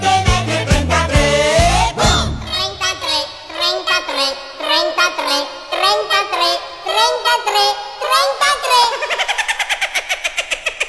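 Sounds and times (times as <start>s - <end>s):
bright music accompaniment: 0.0s - 3.2s
high childlike voice singing a cartoon closing theme: 0.7s - 9.4s
laughter: 8.7s - 10.8s.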